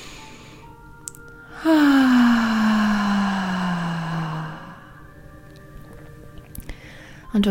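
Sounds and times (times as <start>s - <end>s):
deep breath drawn in during a relaxation exercise: 1.5s - 5.1s, 6.7s - 7.3s.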